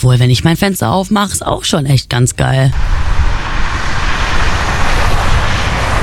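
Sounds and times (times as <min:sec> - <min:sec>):
speech: 0:00.0 - 0:03.3
street traffic noise: 0:02.7 - 0:06.0.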